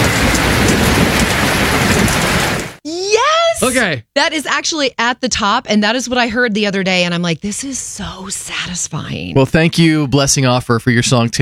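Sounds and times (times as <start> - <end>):
steady rain falling: 0.0 - 2.8
speech: 3.6 - 11.4.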